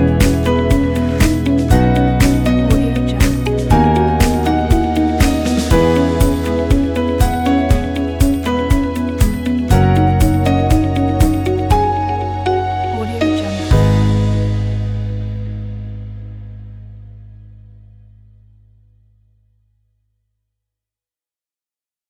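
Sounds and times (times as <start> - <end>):
inspiring corporate background music: 0.0 - 15.9.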